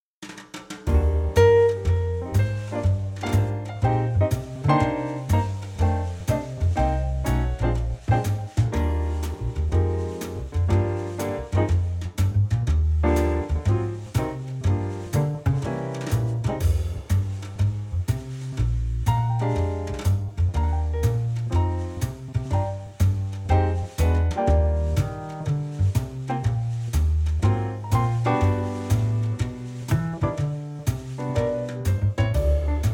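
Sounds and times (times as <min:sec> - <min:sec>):
instrumental trio music in E-flat: 0:00.2 - 0:32.9.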